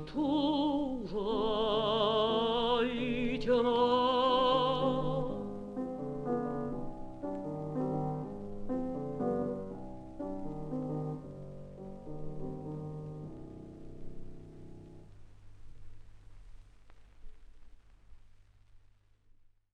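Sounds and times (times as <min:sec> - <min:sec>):
mezzo-soprano singing: 0:00.0 - 0:08.3
fortepiano: 0:00.0 - 0:16.6.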